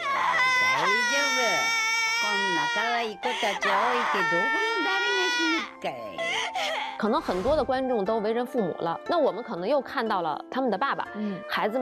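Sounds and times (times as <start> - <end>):
girl bursting into tears, wailing and sobbing: 0.0 - 7.0
speech: 2.7 - 11.8.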